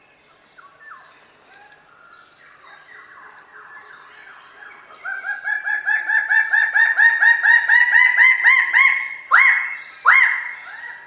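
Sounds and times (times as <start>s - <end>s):
Raggiana bird-of-paradise call: 2.6s - 11.0s.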